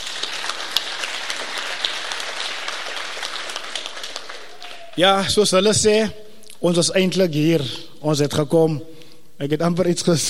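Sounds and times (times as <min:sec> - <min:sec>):
crowd clapping: 0:00.0 - 0:05.3
speech: 0:05.0 - 0:10.2.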